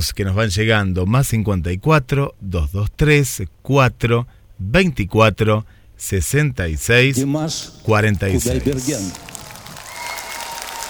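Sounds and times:
speech: 0.0 - 9.3
applause: 8.2 - 10.8.

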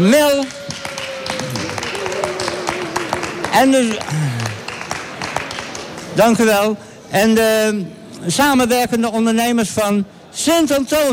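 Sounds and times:
speech: 0.0 - 0.6, 3.6 - 4.4, 6.2 - 11.1
audience applause: 0.2 - 6.2.

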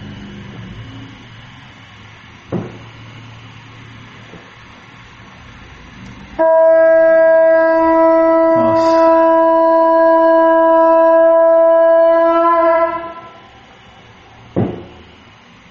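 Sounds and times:
conch shell being blown: 6.4 - 13.5.

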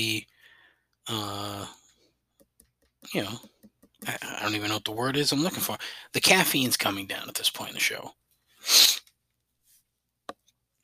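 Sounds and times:
speech: 1.1 - 1.8, 3.1 - 8.9
big sniffle into the microphone: 8.6 - 9.1.

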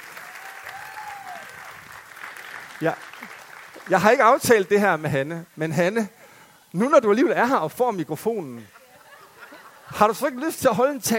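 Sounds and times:
church congregation applauding to welcome a member home from New Zealand: 0.0 - 4.8
speech: 2.8 - 3.3, 3.9 - 8.8, 9.9 - 11.1
laughter: 8.6 - 11.0.

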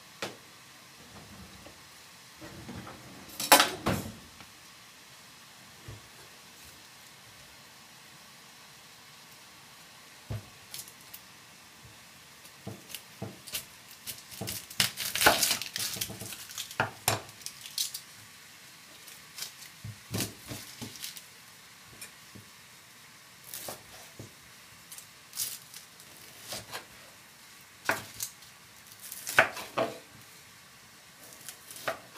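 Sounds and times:
low steady hiss: 0.0 - 32.1
dishes, pots and utensils clattering during packed lunch preparation: 2.4 - 4.2.

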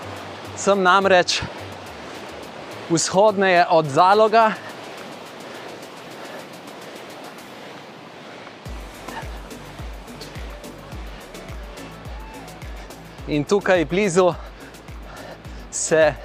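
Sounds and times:
rushing water of the Ljubljanica river east of Zalog: 0.0 - 16.2
speech: 0.6 - 1.6, 2.9 - 4.7, 13.3 - 14.4, 15.9 - 16.2
regular low thumps: 8.7 - 16.2.

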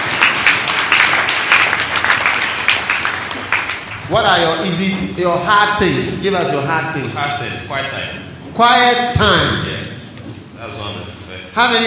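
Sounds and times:
audience applause: 0.0 - 4.1
speech: 4.1 - 9.9, 10.6 - 11.8.

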